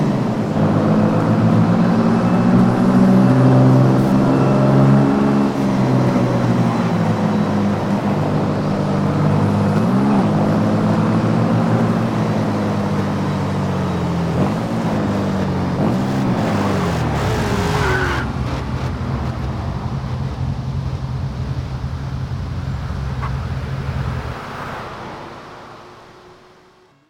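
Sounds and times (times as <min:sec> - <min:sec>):
1968 Porsche 911 E engine: 0:00.0 - 0:27.0.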